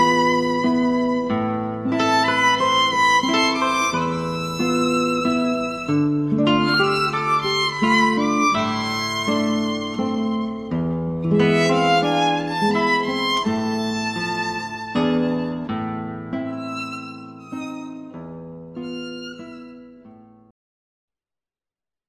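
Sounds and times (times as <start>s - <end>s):
classical violin and guitar duet: 0.0s - 20.5s.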